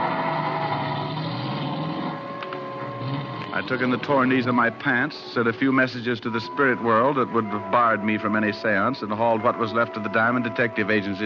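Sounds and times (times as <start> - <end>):
car engine driving away: 0.0 - 4.3
speech: 3.6 - 11.2.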